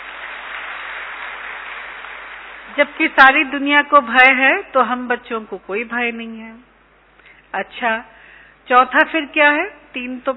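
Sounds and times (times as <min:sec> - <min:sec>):
children clapping loudly for themselves at a gathering: 0:00.0 - 0:02.8
speech: 0:02.8 - 0:06.7, 0:07.5 - 0:10.3.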